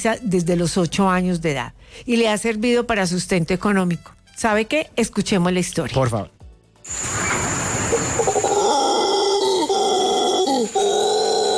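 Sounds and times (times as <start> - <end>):
speech: 0.0 - 7.4
howler monkeys howling: 6.9 - 11.5.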